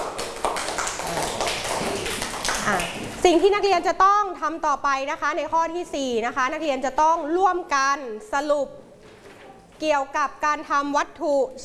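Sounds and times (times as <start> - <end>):
children clapping hands: 0.0 - 3.2
speech: 2.7 - 8.8, 9.8 - 11.6.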